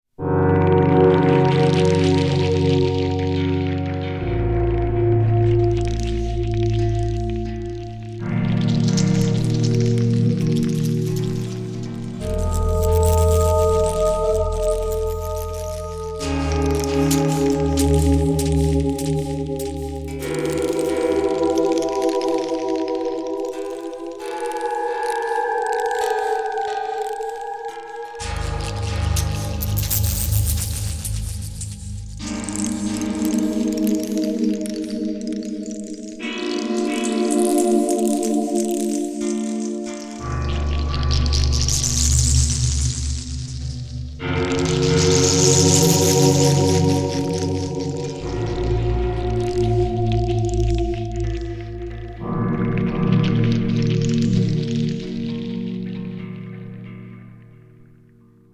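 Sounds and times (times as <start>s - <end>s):
Sequential Prophet X synthesizer: 0.1s - 58.5s.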